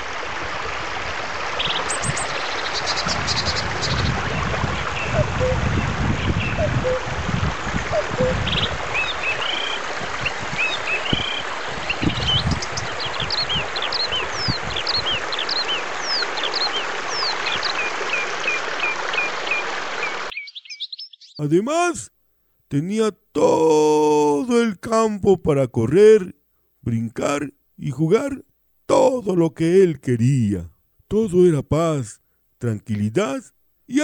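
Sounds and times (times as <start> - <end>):
babbling brook: 0.0 - 20.3, 22.8 - 26.3, 26.9 - 34.0
birdsong: 1.6 - 7.1, 7.7 - 22.1
speech: 21.4 - 22.1, 22.7 - 34.0.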